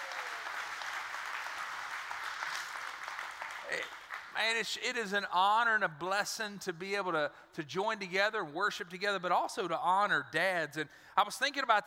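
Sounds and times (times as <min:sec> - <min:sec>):
audience applauding with hand claps: 0:00.0 - 0:04.4
speech: 0:03.7 - 0:11.8.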